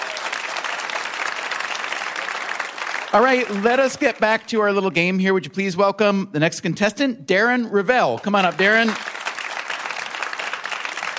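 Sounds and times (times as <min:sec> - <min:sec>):
game show audience applauding: 0:00.0 - 0:04.8, 0:08.2 - 0:11.1
speech: 0:03.1 - 0:09.1.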